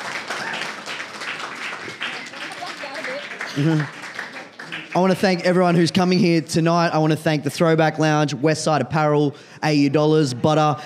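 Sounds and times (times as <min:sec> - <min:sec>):
audience applause: 0:00.0 - 0:05.8
speech: 0:03.6 - 0:04.0, 0:05.0 - 0:10.8.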